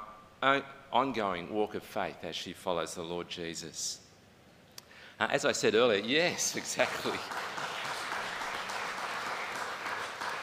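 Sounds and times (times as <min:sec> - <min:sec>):
speech: 0:00.4 - 0:04.0, 0:05.2 - 0:07.5
person clapping: 0:06.4 - 0:10.4.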